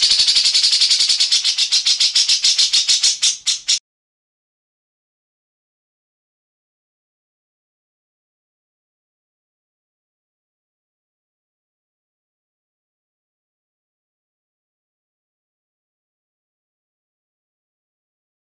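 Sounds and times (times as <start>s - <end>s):
grey-cheeked bulbul harsh rattling song: 0.0s - 3.8s.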